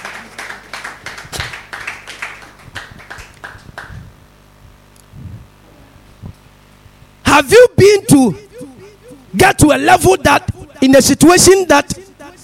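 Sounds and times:
audience clapping hands: 0.0 - 4.2
speech: 7.4 - 8.4, 9.4 - 12.0.

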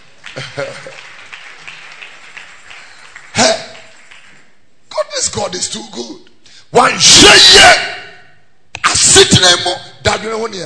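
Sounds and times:
audience clapping: 0.0 - 4.6
speech: 0.4 - 1.1, 5.4 - 8.0, 9.6 - 10.6.

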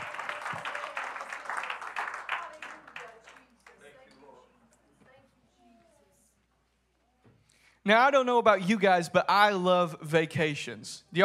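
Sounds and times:
audience clapping: 0.0 - 4.0
speech: 7.9 - 11.2.

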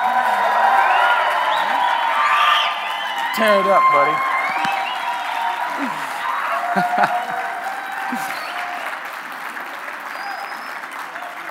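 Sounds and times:
crowd cheering and whooping at an Ozarks gathering: 0.0 - 11.4
scattered clapping: 0.0 - 11.4
whistles: 0.8 - 3.4, 4.2 - 5.5, 8.1 - 9.0, 10.0 - 11.1
speech: 3.4 - 4.3, 6.8 - 7.2
laughter: 5.5 - 8.8.

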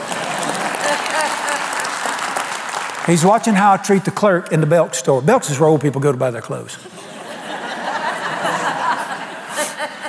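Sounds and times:
laughter: 0.0 - 2.5, 6.8 - 10.0
audience applause and cheering: 0.0 - 3.8
speech: 3.1 - 7.0.

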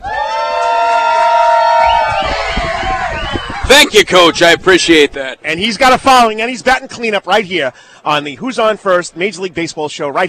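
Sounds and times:
bar crowd cheering: 0.0 - 4.5
speech: 3.9 - 10.2.

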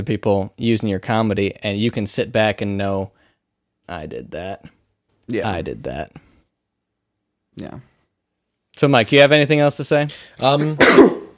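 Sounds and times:
speech: 0.0 - 3.2, 3.9 - 6.3, 7.6 - 7.9, 8.8 - 11.2
sneeze: 10.7 - 11.3.

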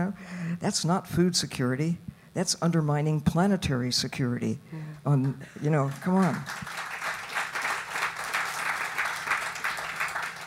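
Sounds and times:
speech: 0.0 - 6.9
audience clapping: 5.2 - 10.4.

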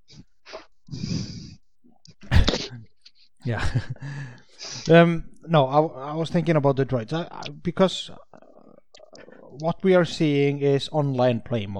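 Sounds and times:
breathing into a microphone: 0.1 - 1.6, 4.0 - 4.9, 8.5 - 9.6
speech: 3.4 - 8.3, 9.6 - 11.7.

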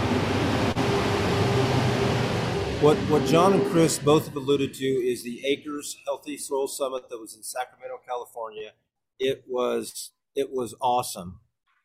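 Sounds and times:
truck driving past: 0.0 - 5.1
speech: 2.8 - 11.4.

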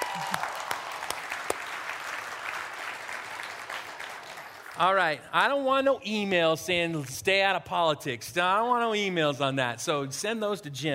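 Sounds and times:
audience clapping: 0.0 - 5.2
speech: 4.8 - 10.9.

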